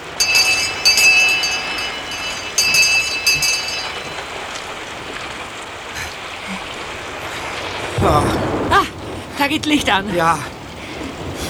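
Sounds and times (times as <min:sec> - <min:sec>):
small hanging door bell ringing: 0:00.0 - 0:04.9
steady hiss: 0:00.0 - 0:11.4
speech: 0:09.4 - 0:10.5.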